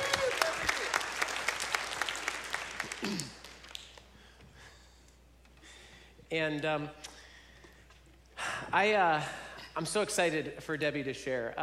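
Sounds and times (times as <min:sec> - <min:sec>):
audience applauding to welcome a guest speaker: 0:00.0 - 0:04.1
speech: 0:03.0 - 0:03.3, 0:06.3 - 0:07.1, 0:08.7 - 0:11.6.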